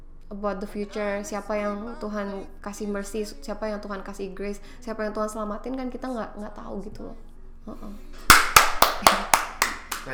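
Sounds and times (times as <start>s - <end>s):
speech: 0.3s - 8.4s, 9.0s - 9.3s
hand claps: 8.3s - 10.1s.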